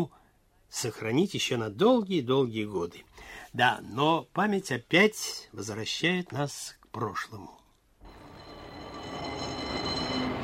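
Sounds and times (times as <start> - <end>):
speech: 0.0 - 7.6
running tram car: 8.0 - 10.4.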